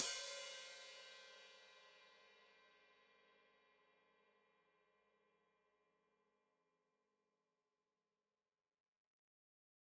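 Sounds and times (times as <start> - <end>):
open hi-hat played with foot: 0.0 - 1.0.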